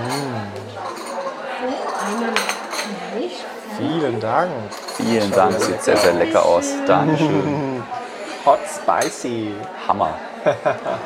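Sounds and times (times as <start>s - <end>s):
chai cups and dishes clinking as set down on a table: 0.0s - 3.0s, 4.7s - 7.5s, 8.5s - 9.6s
chatter and voices talking: 0.0s - 11.0s
speech: 4.0s - 11.0s
laughter: 5.6s - 8.7s, 10.2s - 11.0s.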